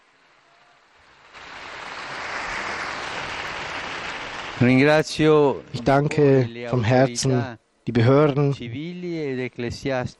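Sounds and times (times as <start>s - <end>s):
crowd applauding: 0.0s - 5.3s
speech: 4.6s - 10.1s.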